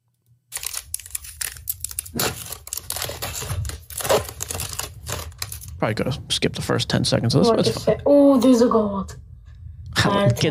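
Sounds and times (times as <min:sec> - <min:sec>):
kid tearing a foil pack of 2020 Bowman Chrome baseball trading cards: 0:00.5 - 0:05.7
speech: 0:05.8 - 0:09.2, 0:10.0 - 0:10.4.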